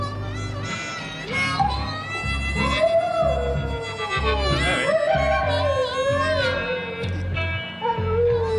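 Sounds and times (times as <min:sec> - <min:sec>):
harmonica playing blues: 0:00.0 - 0:08.5
dog howling along to a harmonica: 0:01.4 - 0:07.1, 0:07.8 - 0:08.5.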